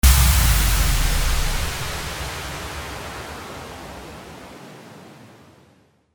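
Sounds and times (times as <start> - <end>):
impact: 0.0 - 3.3.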